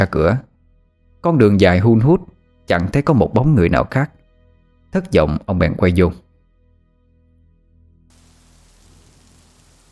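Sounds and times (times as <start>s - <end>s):
speech: 0.0s - 0.5s, 1.2s - 4.2s, 4.9s - 6.2s
low humming drone: 8.1s - 9.9s
rain falling at night in Rạch Giá during the tropical depression season: 8.1s - 9.9s.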